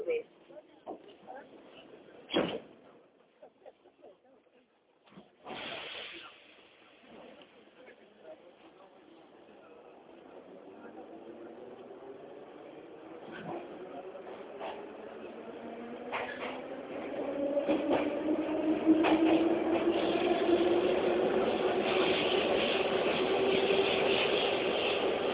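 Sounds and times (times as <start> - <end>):
Moscow metro train doors closing: 2.3 - 2.7
Moscow metro train rumbling: 9.4 - 25.3.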